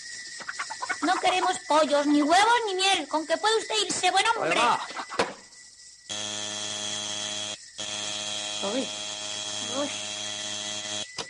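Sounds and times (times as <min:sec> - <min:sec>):
speech: 0:01.0 - 0:05.1, 0:08.6 - 0:09.0
harsh electric doorbell buzzer held down: 0:06.1 - 0:11.2.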